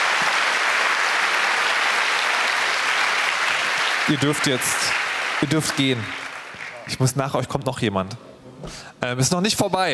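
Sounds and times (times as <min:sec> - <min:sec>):
audience applause: 0:00.0 - 0:07.2
speech: 0:04.1 - 0:06.2, 0:06.9 - 0:09.9.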